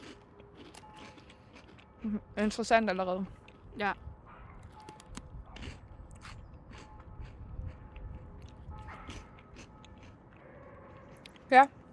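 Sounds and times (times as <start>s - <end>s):
crunching and biting of chocolate-coated snacks being tasted: 0.0s - 2.1s, 4.6s - 10.2s
speech: 2.0s - 4.1s, 11.6s - 11.8s.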